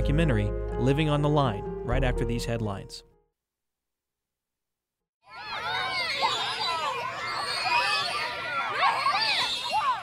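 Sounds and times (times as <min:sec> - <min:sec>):
speech: 0:00.1 - 0:03.1
children shouting and squealing on playground swings at recess: 0:05.2 - 0:10.0.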